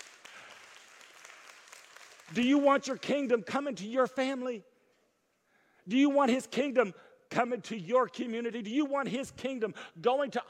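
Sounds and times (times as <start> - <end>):
audience clapping: 0.0 - 3.4
speech: 2.3 - 4.7, 5.9 - 10.4.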